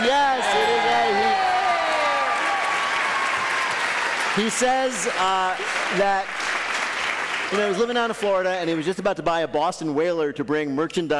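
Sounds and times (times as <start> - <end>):
audience cheering and yelling: 0.0 - 5.0
speech: 4.4 - 6.6, 7.5 - 11.1.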